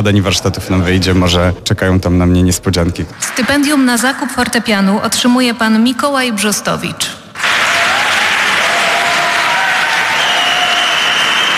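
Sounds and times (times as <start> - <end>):
speech: 0.0 - 7.2
loud audience applause: 3.2 - 4.4, 7.4 - 11.5.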